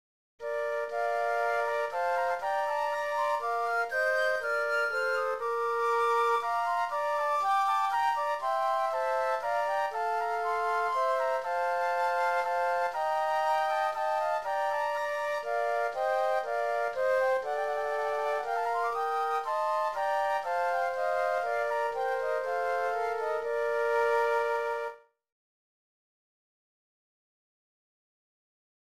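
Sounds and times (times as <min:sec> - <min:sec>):
flutes: 0:00.4 - 0:25.2.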